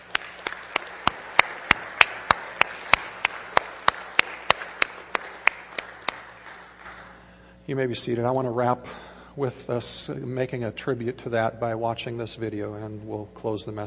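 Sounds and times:
audience applauding: 0.0s - 7.3s
speech: 7.7s - 13.8s.

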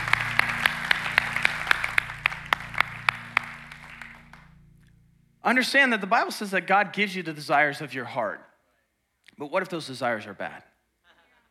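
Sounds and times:
audience applause: 0.0s - 4.5s
sustained low musical drone: 0.0s - 6.2s
speech: 5.5s - 8.5s, 9.4s - 10.7s.

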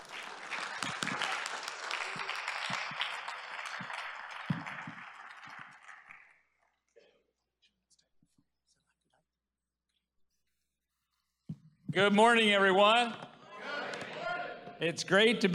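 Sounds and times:
audience round of applause: 0.0s - 6.6s
speech: 12.0s - 13.2s, 14.8s - 15.5s.

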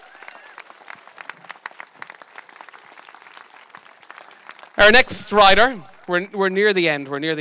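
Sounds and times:
audience applause: 0.0s - 5.0s
speech: 4.8s - 7.4s.

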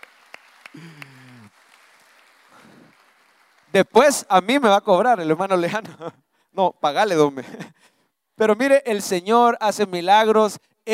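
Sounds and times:
scattered handclaps: 0.0s - 3.8s
speech: 0.8s - 1.1s, 3.7s - 7.7s, 8.4s - 10.9s.

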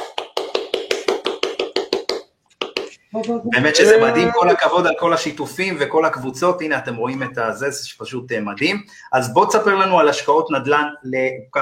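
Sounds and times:
brisk steady hand clapping: 0.0s - 3.0s
speech: 3.1s - 11.6s.

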